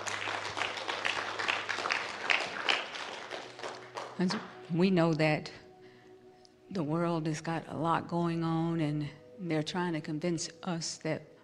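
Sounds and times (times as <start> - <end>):
audience hand clapping: 0.0 - 4.7
speech: 4.2 - 5.6, 6.7 - 11.3.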